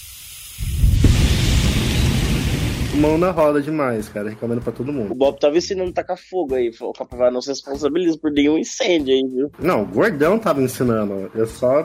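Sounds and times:
alcohol spraying from a deodorant-type aerosol can: 0.0 - 2.7
speech: 3.0 - 11.8.

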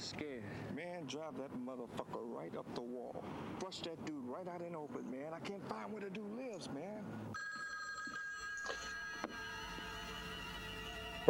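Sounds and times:
speech: 1.0 - 7.6
telephone ringing: 7.3 - 11.2.

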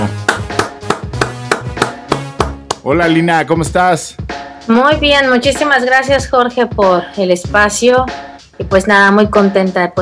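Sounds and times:
rhythmic clapping: 0.0 - 3.1
speech: 2.8 - 10.0.

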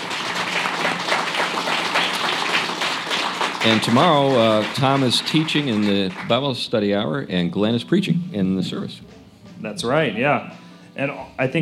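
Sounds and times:
crowd applauding: 0.0 - 6.9
speech: 3.6 - 11.6.

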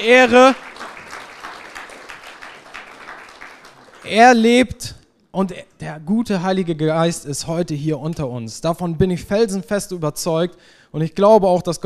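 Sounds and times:
speech: 0.0 - 0.7, 4.0 - 11.8
audience applause: 0.0 - 4.4.

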